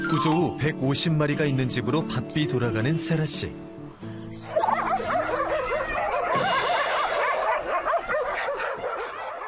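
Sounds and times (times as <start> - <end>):
speech: 0.1 - 3.7
dogs barking: 4.4 - 9.4.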